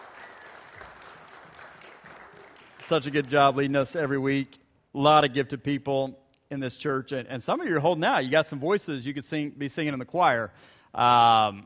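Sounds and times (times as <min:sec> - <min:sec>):
audience applauding worship team: 0:00.0 - 0:04.1
speech: 0:02.9 - 0:11.6.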